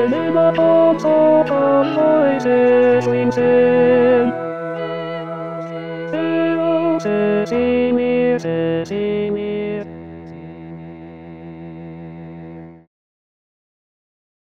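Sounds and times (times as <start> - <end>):
tenor singing: 0.0 - 11.4.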